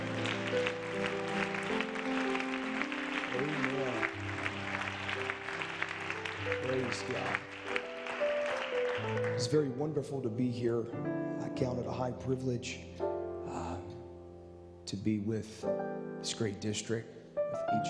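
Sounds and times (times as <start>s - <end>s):
audience clapping hands: 0.0s - 9.7s
sustained keyboard chords: 0.0s - 17.8s
speech: 9.4s - 13.0s, 14.9s - 17.8s.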